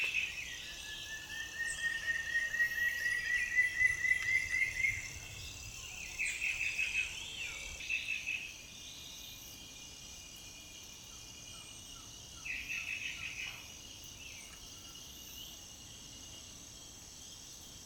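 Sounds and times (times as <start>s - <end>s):
antshrike singing whistled notes: 0.0s - 9.1s
insects buzzing: 0.0s - 17.8s.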